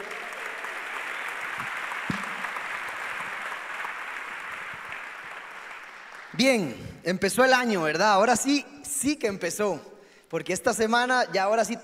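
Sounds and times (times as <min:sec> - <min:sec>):
audience applause for musicians: 0:00.0 - 0:06.4
speech: 0:06.4 - 0:11.8.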